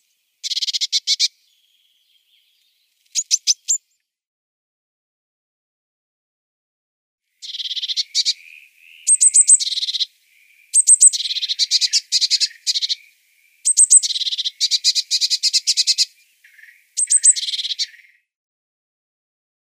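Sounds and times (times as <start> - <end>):
Eurasian Blue Tit calls: 0.0 - 3.9, 7.4 - 18.3.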